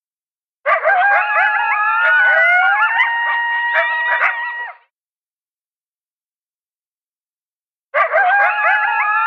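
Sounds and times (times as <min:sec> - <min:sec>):
coyotes yipping and howling: 0:00.6 - 0:04.8, 0:08.0 - 0:09.2.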